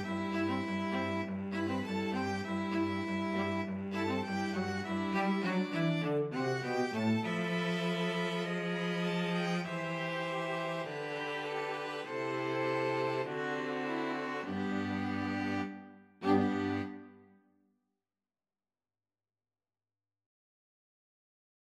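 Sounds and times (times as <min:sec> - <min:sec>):
string quartet: 0:00.0 - 0:17.2.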